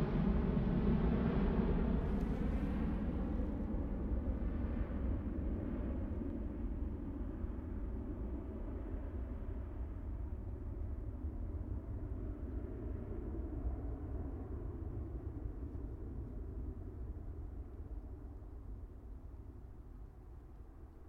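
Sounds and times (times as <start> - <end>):
airplane: 0.0 - 21.0.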